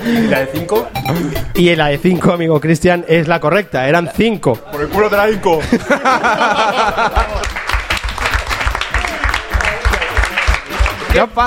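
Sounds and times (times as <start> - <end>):
speech: 0.1 - 7.6, 11.1 - 11.4
laughter: 4.9 - 11.0
applause: 7.2 - 11.3.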